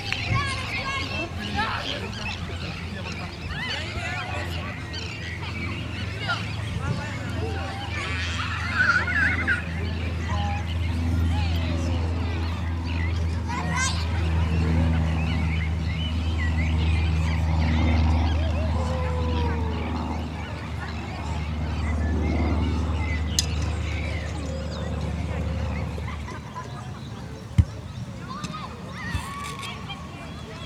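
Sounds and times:
birds at a beach resort: 0:00.0 - 0:30.6
people talking at a beach resort: 0:00.0 - 0:30.6
people laughing at a beach resort: 0:07.6 - 0:09.9, 0:25.4 - 0:27.4.

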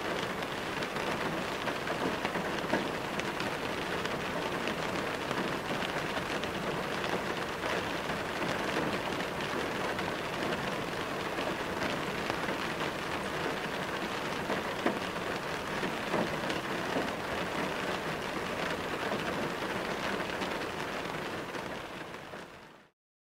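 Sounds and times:
rainfall heard from a car interior: 0:00.0 - 0:22.9.

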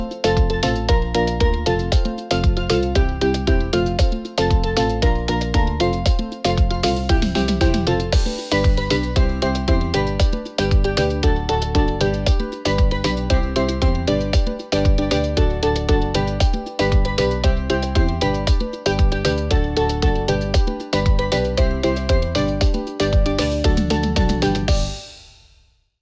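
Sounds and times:
tropical summer beat: 0:00.0 - 0:25.3.

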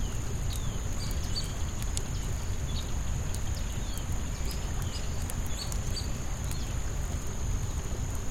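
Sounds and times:
forest campfire crackling: 0:00.0 - 0:08.3.

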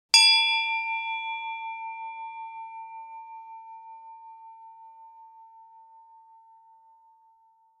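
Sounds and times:
handbell single ring: 0:00.2 - 0:05.8.

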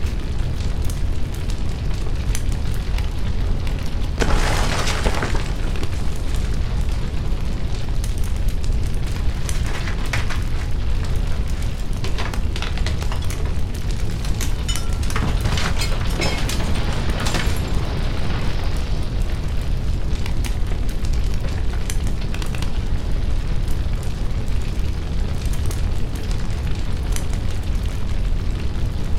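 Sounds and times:
burning house intense fire raging: 0:00.0 - 0:29.1.

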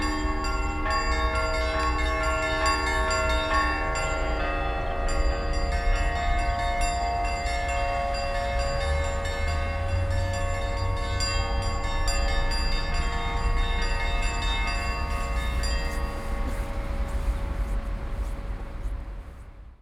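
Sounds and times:
church bells ringing in a city: 0:00.0 - 0:18.5
urban city ambience: 0:00.0 - 0:19.8.

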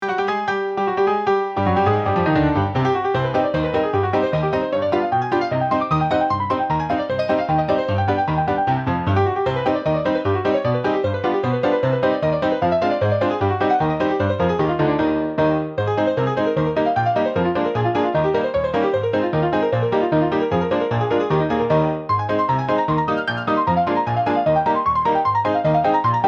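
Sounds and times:
fast tempo meme music: 0:00.0 - 0:26.2.

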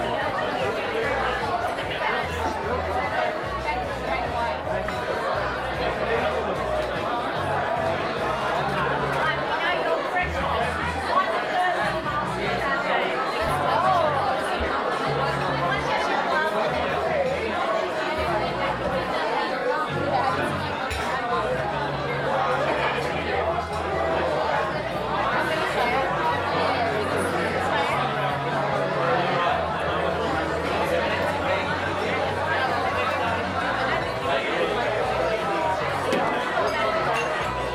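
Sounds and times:
crowd in busy restaurant: 0:00.0 - 0:37.7.

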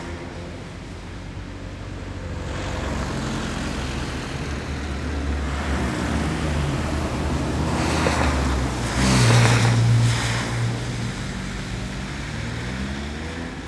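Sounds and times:
cars passing in the city: 0:00.0 - 0:13.6
city traffic rumble on a rainy day: 0:00.0 - 0:13.6.

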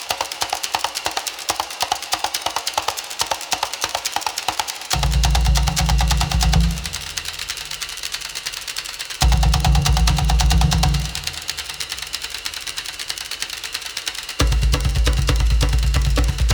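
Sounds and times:
tribal drum beat: 0:00.2 - 0:08.0, 0:09.2 - 0:12.6, 0:14.4 - 0:16.5.

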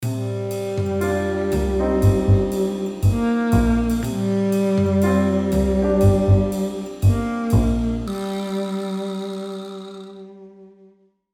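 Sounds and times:
light suspense sitcom music: 0:00.1 - 0:08.2.

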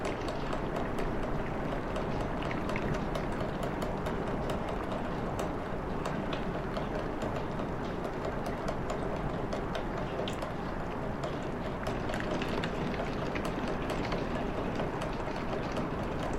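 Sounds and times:
rain on window heard from interior: 0:00.0 - 0:16.3.

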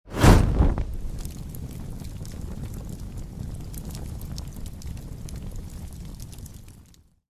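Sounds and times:
superhero flying whoosh: 0:00.1 - 0:01.3
flames roaring: 0:00.1 - 0:07.1.

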